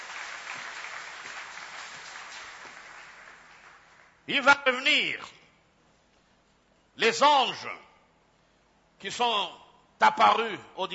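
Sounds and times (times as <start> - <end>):
congregation applauding during a French-language church service: 0.0 - 4.5
speech: 4.3 - 5.4, 7.0 - 7.8, 9.0 - 10.9.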